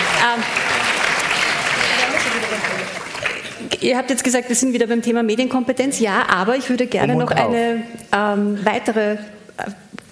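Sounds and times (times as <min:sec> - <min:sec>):
audience applause: 0:00.0 - 0:03.8
speech: 0:00.2 - 0:00.6, 0:03.8 - 0:09.9.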